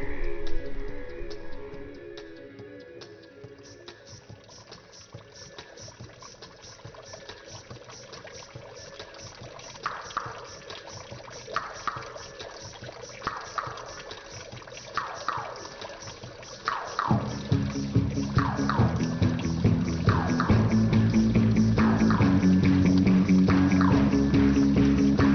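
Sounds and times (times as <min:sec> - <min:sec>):
water trickling in the Marais Doux marsh at Aytré: 0:00.0 - 0:25.3
loud low drone: 0:17.1 - 0:25.3.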